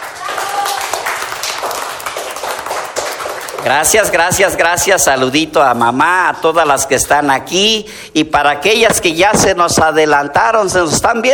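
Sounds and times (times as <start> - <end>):
audience applause: 0.0 - 4.6
speech: 3.6 - 11.3.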